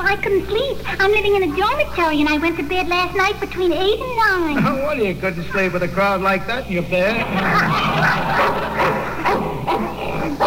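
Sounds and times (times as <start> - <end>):
speech: 0.1 - 10.4
laughter: 7.0 - 10.4
Russian wolfhound barking in quick, loud yelps: 8.0 - 10.4.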